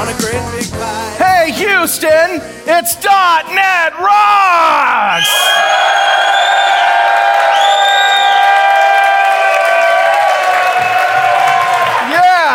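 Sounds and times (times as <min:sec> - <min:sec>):
speech: 0:00.1 - 0:06.0
large live audience cheering: 0:04.6 - 0:12.5
scattered clapping: 0:07.0 - 0:12.5.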